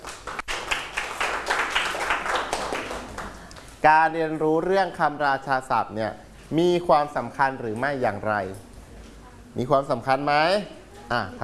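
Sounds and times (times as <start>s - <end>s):
classroom clapping: 0.0s - 3.7s
speech: 3.8s - 8.7s, 9.5s - 11.4s.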